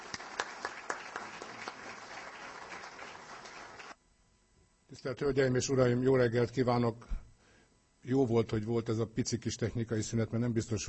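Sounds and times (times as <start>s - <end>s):
audience applause at a Hungarian award ceremony: 0.0s - 4.0s
speech: 4.9s - 7.2s, 8.0s - 10.8s.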